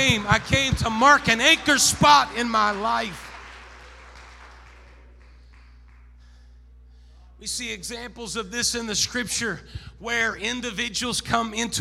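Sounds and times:
speech: 0:00.0 - 0:03.3, 0:07.4 - 0:11.7
audience clapping: 0:00.0 - 0:06.2.

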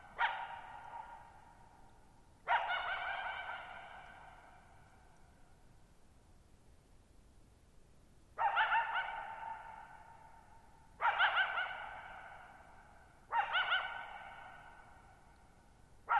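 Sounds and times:
coyote barking, howling and yipping with echo: 0:02.5 - 0:04.5, 0:08.4 - 0:10.0, 0:11.0 - 0:15.1.

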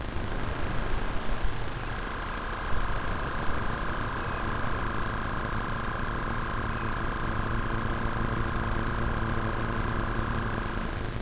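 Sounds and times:
electromagnetic frequencies rendered as electrical hum by a handheld device: 0:00.0 - 0:11.2.

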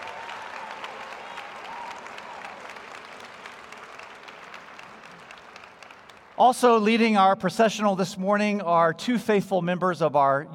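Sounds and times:
crowd applauding: 0:00.0 - 0:06.8
speech: 0:06.4 - 0:10.5.

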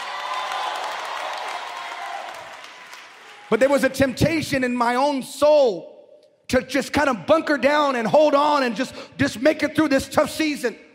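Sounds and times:
audience clapping: 0:00.0 - 0:04.0
speech: 0:03.5 - 0:05.9, 0:06.5 - 0:10.8.

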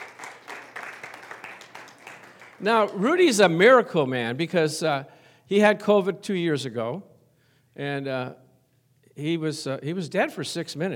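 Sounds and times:
church congregation applauding to welcome a man forward: 0:00.0 - 0:03.8
speech: 0:02.6 - 0:07.1, 0:07.8 - 0:08.4, 0:09.2 - 0:10.9.

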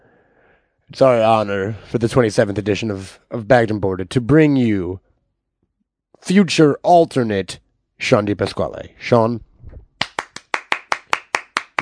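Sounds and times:
speech: 0:00.9 - 0:05.1, 0:06.2 - 0:09.5
one person clapping hands: 0:10.0 - 0:11.8.

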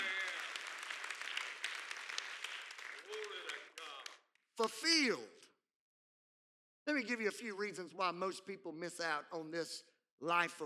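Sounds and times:
church congregation clapping during a sermon: 0:00.0 - 0:05.0
speech: 0:04.6 - 0:05.4, 0:06.9 - 0:10.6.

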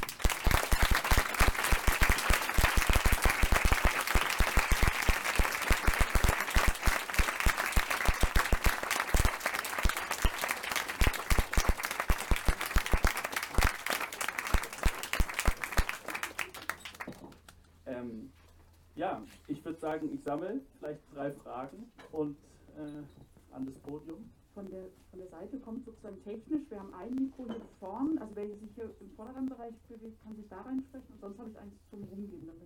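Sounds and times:
audience applause: 0:00.0 - 0:17.2
speech: 0:19.9 - 0:28.1.

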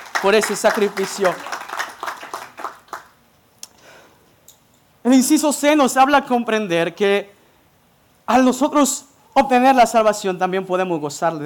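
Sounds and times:
applause: 0:00.0 - 0:03.2
speech: 0:00.2 - 0:01.6, 0:05.1 - 0:07.4, 0:08.3 - 0:11.4.

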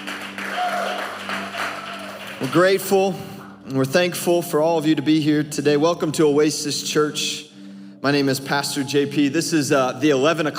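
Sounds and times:
audience clapping in welcome: 0:00.0 - 0:03.6
speech: 0:02.4 - 0:10.5.

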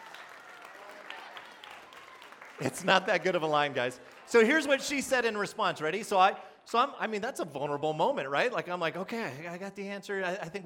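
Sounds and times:
audience applause: 0:00.0 - 0:05.3
speech: 0:02.6 - 0:10.6.

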